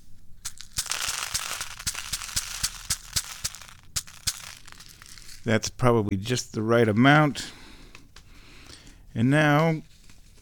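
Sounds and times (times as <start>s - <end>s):
granular wheat kitty litter poured onto a sheet of paper: 0.5s - 5.5s
speech: 5.4s - 7.6s, 9.2s - 9.9s.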